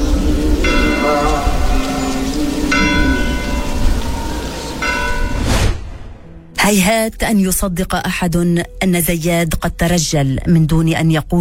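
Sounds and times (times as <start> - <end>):
church bells ringing: 0.0 - 5.4
speech: 6.7 - 11.3.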